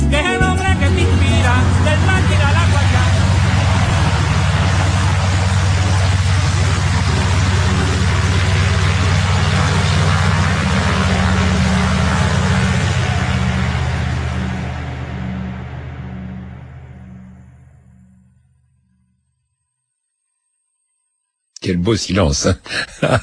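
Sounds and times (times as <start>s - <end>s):
small airplane engine in flight: 0.2s - 18.2s
speech: 21.7s - 23.2s
laughter: 22.5s - 23.2s.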